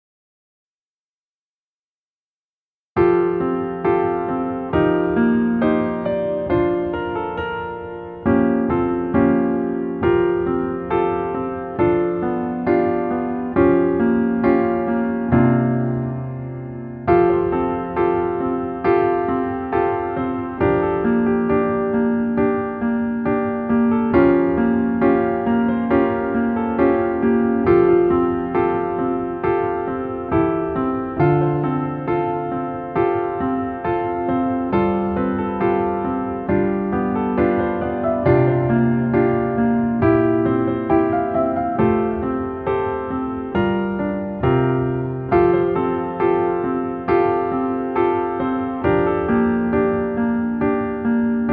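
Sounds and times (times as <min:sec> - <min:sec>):
piano melody backing track in female key: 0:03.0 - 0:51.5.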